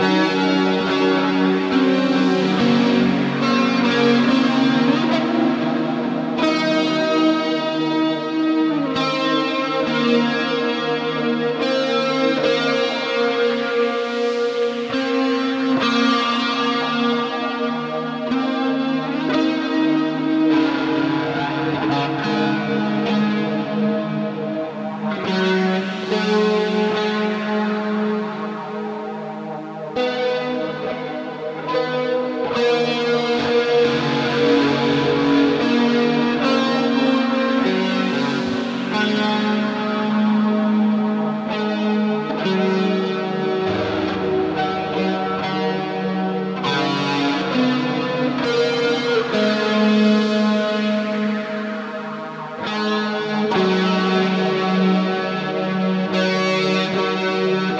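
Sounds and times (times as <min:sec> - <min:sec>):
high guitar: 0:00.0 - 0:57.7.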